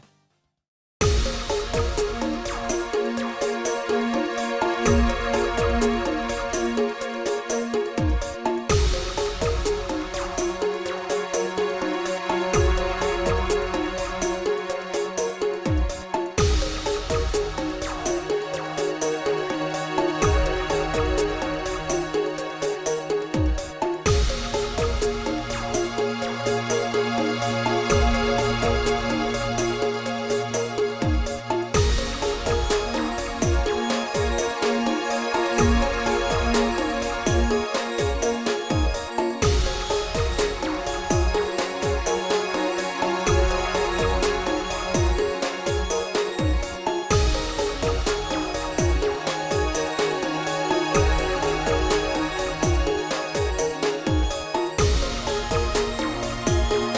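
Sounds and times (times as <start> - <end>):
background music: 1.0 - 56.9.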